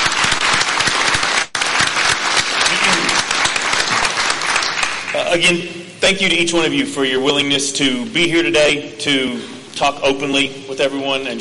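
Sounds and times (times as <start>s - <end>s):
crowd applause: 0.0s - 5.4s
speech: 5.2s - 11.3s.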